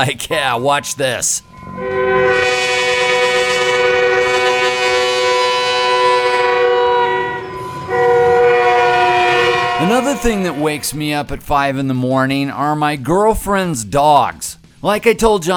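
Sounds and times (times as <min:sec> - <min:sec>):
speech: 0:00.0 - 0:02.4, 0:09.8 - 0:15.5
train horn blasting: 0:00.6 - 0:11.3.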